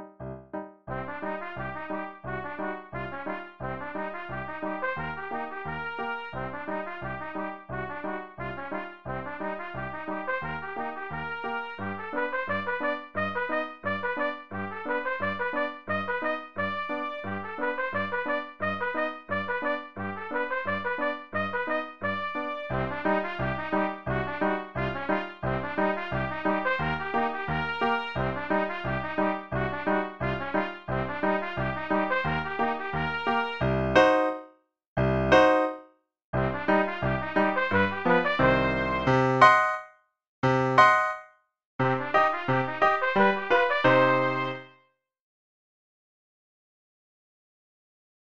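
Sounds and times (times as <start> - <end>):
trumpet solo: 0.9 - 34.4, 36.3 - 39.9, 40.5 - 41.2, 41.8 - 44.7.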